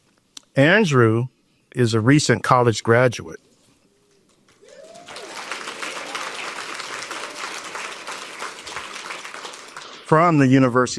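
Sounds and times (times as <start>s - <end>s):
speech: 0.6s - 3.5s, 10.1s - 10.9s
audience applause: 4.5s - 10.7s.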